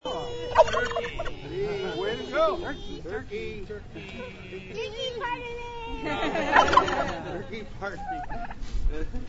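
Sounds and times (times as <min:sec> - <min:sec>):
laughter: 0:00.0 - 0:02.7, 0:04.0 - 0:05.2, 0:06.0 - 0:09.2
turkey: 0:00.6 - 0:01.3.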